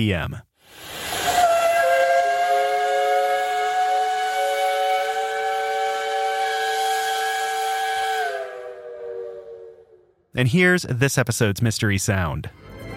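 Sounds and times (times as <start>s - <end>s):
speech: 0.0s - 0.9s, 10.4s - 12.6s
Georgia Tech campus steam whistle blowing: 0.8s - 10.2s.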